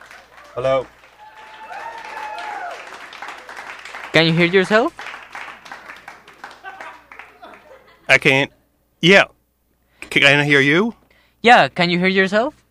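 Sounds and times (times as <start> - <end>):
studio audience at a radio station applauding and cheering: 0.0 - 7.8
speech: 0.6 - 1.0, 4.2 - 5.0, 8.2 - 9.4, 10.1 - 12.6
laughter: 5.5 - 8.4.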